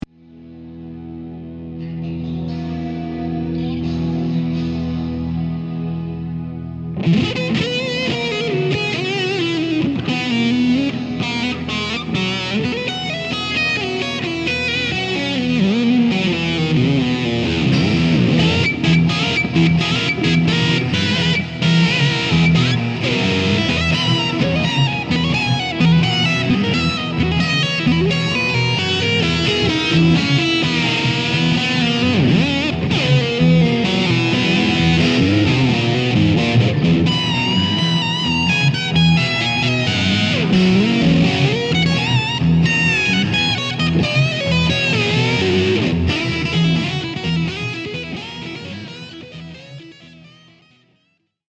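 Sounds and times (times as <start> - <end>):
lydian blues music: 0.0 - 51.0.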